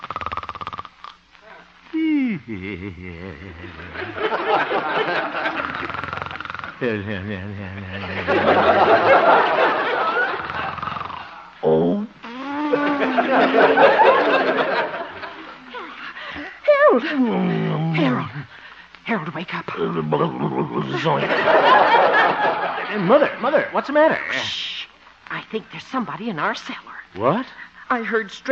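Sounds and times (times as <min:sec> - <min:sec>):
sleeping man snoring gently: 0:00.0 - 0:01.0, 0:02.0 - 0:04.2, 0:05.6 - 0:08.5, 0:10.3 - 0:11.5
speech: 0:01.9 - 0:06.1, 0:06.8 - 0:10.0, 0:13.2 - 0:14.9, 0:17.0 - 0:24.7, 0:25.5 - 0:28.5
laughter: 0:02.0 - 0:11.5, 0:12.7 - 0:16.0, 0:20.2 - 0:23.7.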